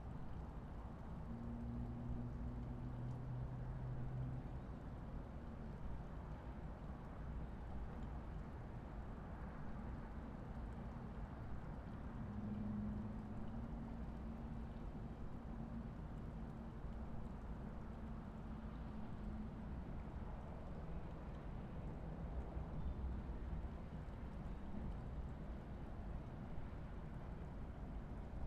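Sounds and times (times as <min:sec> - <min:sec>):
quiet harbor ambience at 5am in Miami: 0:00.0 - 0:28.4.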